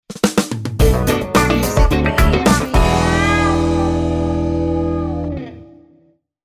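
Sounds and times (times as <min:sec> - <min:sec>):
show ident jingle: 0:00.8 - 0:05.6.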